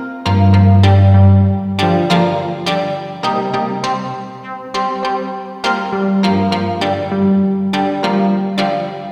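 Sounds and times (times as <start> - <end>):
synth through rich plate reverb: 0.3 - 3.4, 6.1 - 9.0.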